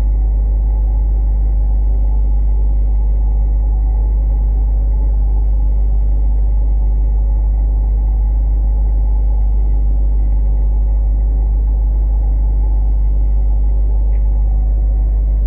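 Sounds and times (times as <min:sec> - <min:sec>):
deep steady tone recorded in a home in Sussex: 0:00.0 - 0:15.4.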